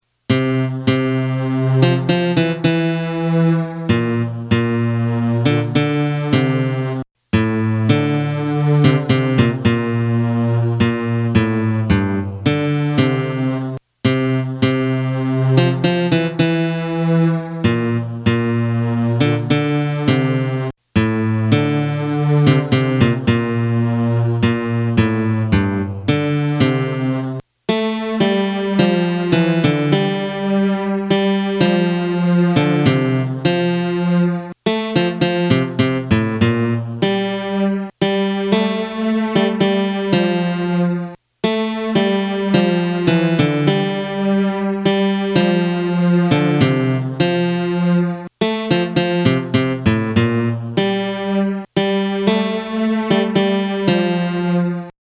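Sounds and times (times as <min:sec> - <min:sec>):
melody: 0:00.3 - 0:54.9.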